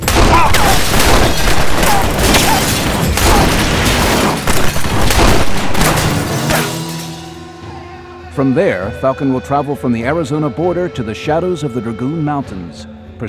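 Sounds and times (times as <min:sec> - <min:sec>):
Colt revolver gunshots in a close gunfight: 0:00.0 - 0:06.8
speech: 0:08.4 - 0:13.2.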